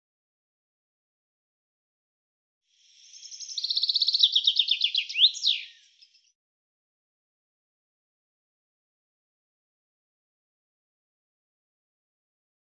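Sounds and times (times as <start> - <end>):
bird song in rapid high trilled phrases: 2.8 - 6.4.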